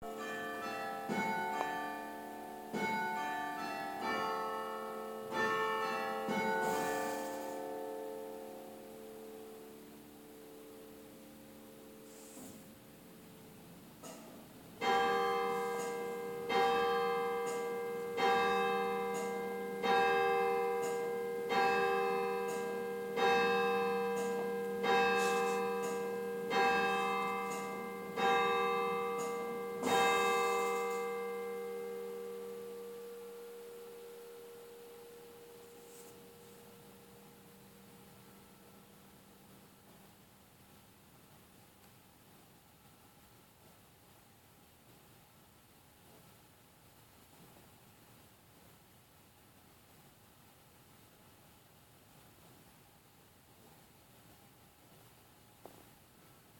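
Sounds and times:
twelve bell carillon: 0.0 - 8.8, 14.8 - 38.5.

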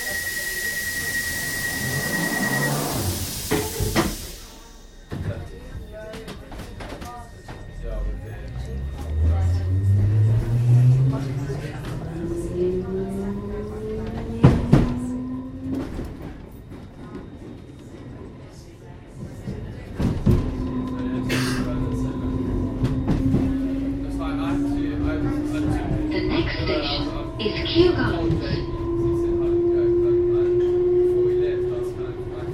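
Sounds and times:
London Underground District Line train rumbling: 0.0 - 32.5
indistinct voices: 0.0 - 32.5
underground train clunks: 1.6 - 8.2, 13.5 - 17.9, 19.2 - 29.0.

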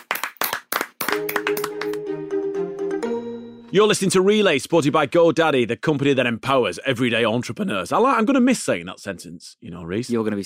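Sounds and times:
round of applause: 0.0 - 2.2
speech: 1.2 - 1.8, 3.7 - 10.4.

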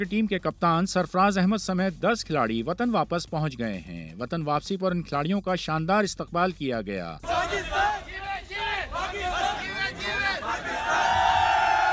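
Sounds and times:
speech: 0.0 - 8.0
crowd shouting and chanting outside Sarfraz Ahmed's home in Karachi: 7.2 - 11.9.

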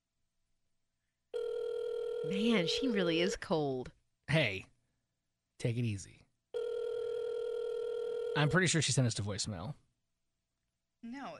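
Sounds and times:
telephone ring tone electronic buzz: 1.3 - 3.3, 6.6 - 8.6
speech: 2.2 - 4.7, 5.6 - 6.2, 8.4 - 9.8, 11.0 - 11.3.

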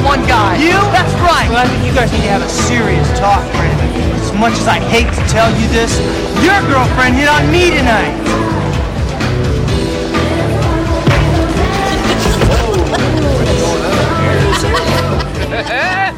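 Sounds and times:
crowd noise: 0.0 - 16.1
speech: 0.6 - 8.6
laughter: 11.4 - 16.1.

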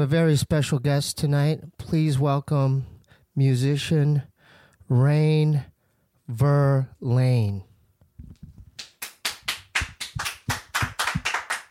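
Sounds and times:
speech: 0.0 - 4.3, 4.9 - 5.7, 6.3 - 7.7
audience clapping: 8.8 - 11.6.

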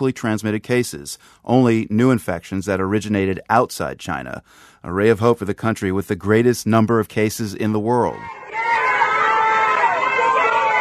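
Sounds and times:
speech: 0.0 - 8.5
Wuhan residents shouting and cheering from balconies and rooftops: 8.1 - 10.7.

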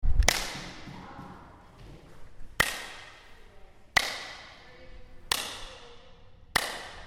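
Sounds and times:
hand clap: 0.2 - 1.1, 2.6 - 3.1, 3.9 - 4.6, 5.3 - 5.8, 6.5 - 7.0.

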